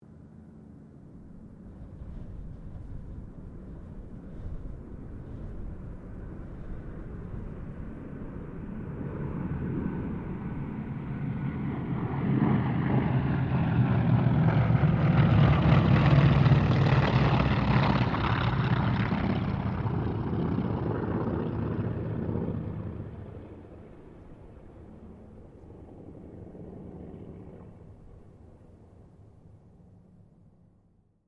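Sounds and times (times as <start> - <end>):
aircraft squadron passing: 0.1 - 31.0.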